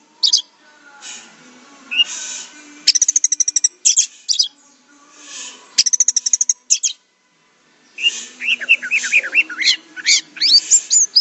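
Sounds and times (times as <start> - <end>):
Orange-headed thrush song: 0.0 - 0.6, 1.9 - 4.9, 5.8 - 7.1, 7.8 - 11.2
faint hiss: 0.0 - 6.5, 7.1 - 9.6.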